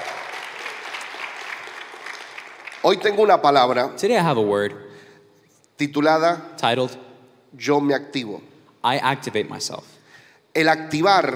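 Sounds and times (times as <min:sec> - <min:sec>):
audience applauding: 0:00.0 - 0:03.4
speech: 0:02.8 - 0:04.9, 0:05.8 - 0:10.0, 0:10.6 - 0:11.3.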